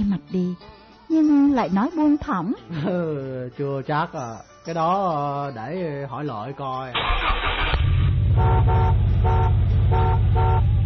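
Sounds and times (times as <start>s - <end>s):
speech: 0.2s - 10.3s
bus engine revving: 7.0s - 10.8s
bus horn honking loudly: 8.3s - 10.8s.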